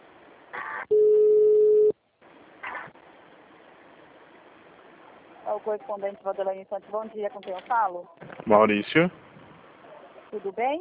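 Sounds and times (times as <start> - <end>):
telephone ring tone during call transfer: 0.9 - 1.9
speech: 5.6 - 9.2, 10.3 - 10.7.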